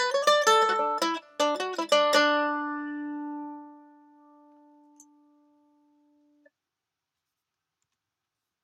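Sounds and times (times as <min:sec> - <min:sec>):
mandolin picking with different picks: 0:00.0 - 0:06.2.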